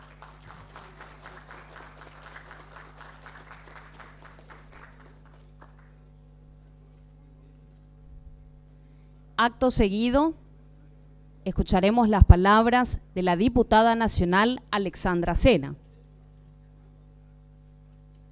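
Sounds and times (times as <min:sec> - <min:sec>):
applause at award ceremony: 0:00.0 - 0:06.2
speech: 0:09.4 - 0:10.4, 0:11.4 - 0:15.8.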